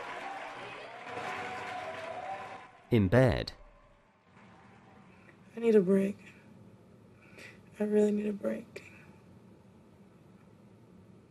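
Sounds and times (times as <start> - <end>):
soft applause from a gathering: 0.0 - 5.4
speech: 2.9 - 3.6, 5.6 - 6.4, 7.8 - 8.8.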